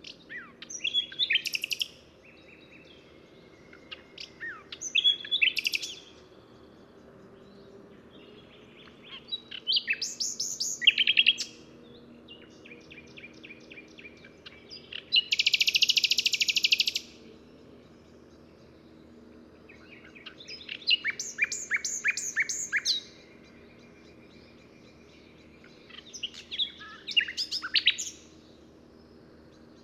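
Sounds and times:
Common nightingale song: 0:00.0 - 0:29.8.

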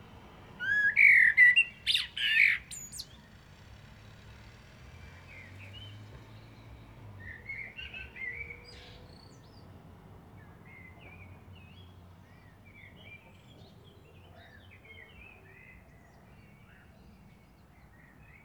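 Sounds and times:
Eurasian blackbird singing: 0:00.6 - 0:03.4, 0:05.2 - 0:09.7, 0:10.4 - 0:18.4.

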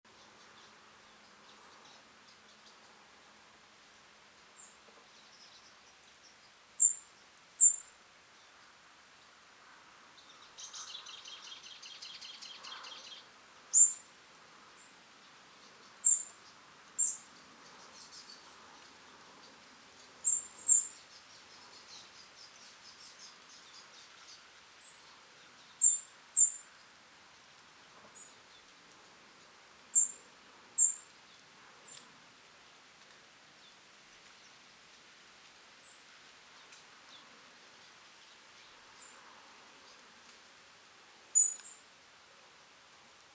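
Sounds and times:
quiet hiss: 0:00.1 - 0:43.3
European robin thin high calls: 0:07.6 - 0:07.9, 0:10.6 - 0:14.0, 0:20.2 - 0:21.1, 0:30.0 - 0:30.2, 0:41.4 - 0:41.8.

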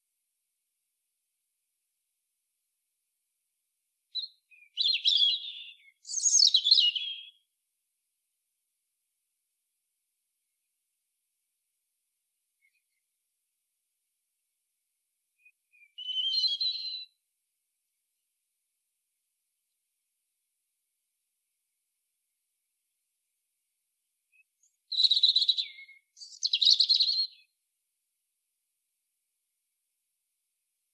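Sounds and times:
European robin singing: 0:04.1 - 0:07.5, 0:15.4 - 0:17.2, 0:24.3 - 0:27.6.

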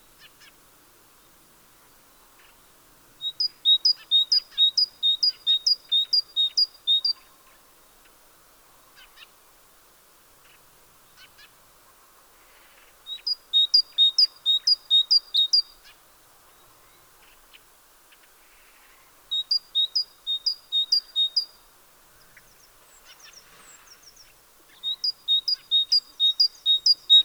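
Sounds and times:
great tit Parus major singing two-note phrases: 0:03.2 - 0:07.2, 0:13.1 - 0:15.7, 0:19.3 - 0:21.6, 0:22.2 - 0:27.2.

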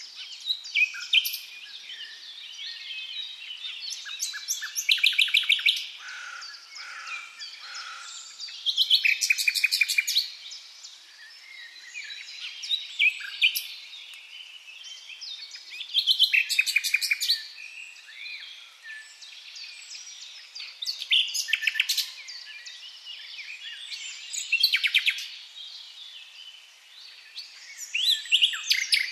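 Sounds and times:
common nightingale in full song: 0:00.0 - 0:29.1.

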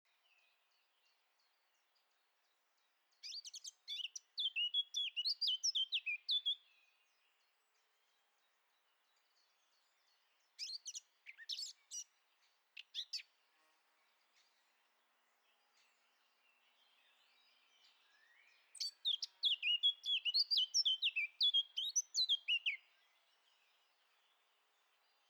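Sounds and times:
Eurasian blackcap song: 0:03.2 - 0:06.7, 0:10.6 - 0:12.1, 0:12.8 - 0:13.3, 0:16.8 - 0:22.8.

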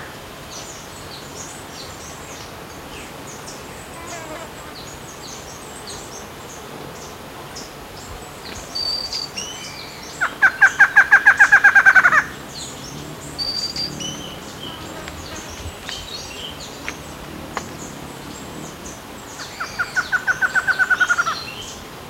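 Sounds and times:
other birds whistling: 0:08.8 - 0:21.4.

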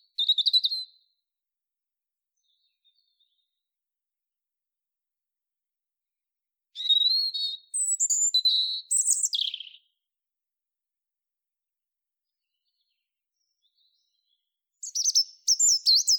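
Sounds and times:
European robin Erithacus rubecula singing: 0:00.1 - 0:00.9, 0:06.8 - 0:10.0, 0:12.4 - 0:16.1.

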